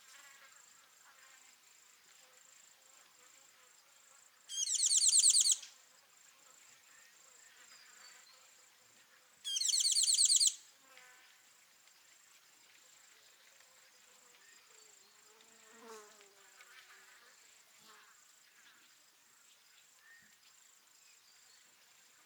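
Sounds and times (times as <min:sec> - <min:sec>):
Tinkling Cisticola calling: 0:04.5 - 0:05.6, 0:09.5 - 0:10.6.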